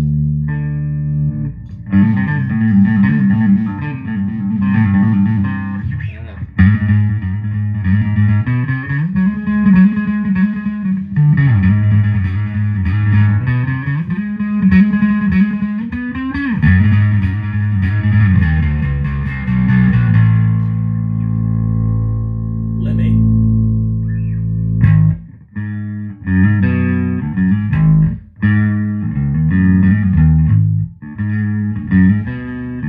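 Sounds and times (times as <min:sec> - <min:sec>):
distorted electric guitar through a wah pedal: 0:00.0 - 0:32.8.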